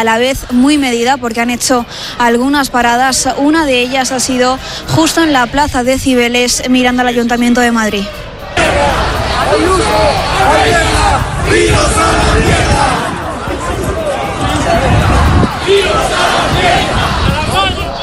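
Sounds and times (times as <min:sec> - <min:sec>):
speech: 0:00.0 - 0:12.3
protest crowd shouting against the government: 0:07.9 - 0:18.0.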